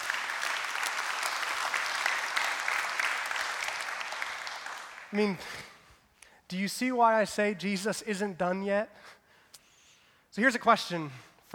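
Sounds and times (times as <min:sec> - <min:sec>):
audience applause: 0:00.0 - 0:05.1
speech: 0:05.1 - 0:05.7, 0:06.5 - 0:09.2, 0:10.4 - 0:11.5.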